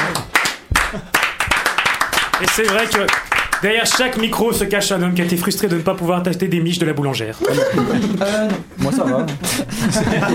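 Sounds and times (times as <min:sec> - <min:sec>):
rhythmic French ban clapping: 0:00.0 - 0:05.8
laughter: 0:00.8 - 0:01.2, 0:07.4 - 0:10.3
speech: 0:00.9 - 0:01.1, 0:02.4 - 0:10.3.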